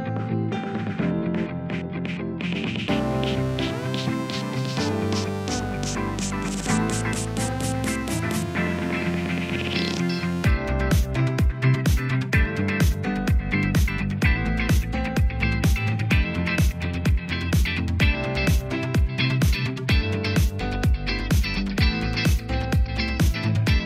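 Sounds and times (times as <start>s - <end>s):
dance pop music: 0.2s - 23.8s.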